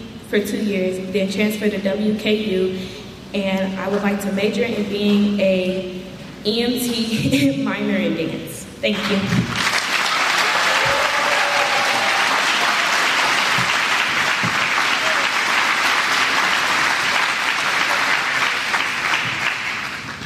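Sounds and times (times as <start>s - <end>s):
speech: 0.3s - 9.6s
audience applause: 9.5s - 20.2s.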